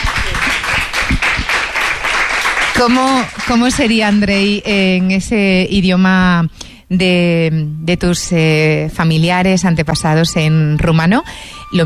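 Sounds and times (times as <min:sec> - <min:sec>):
audience applause: 0:00.0 - 0:04.2
speech: 0:02.8 - 0:11.8.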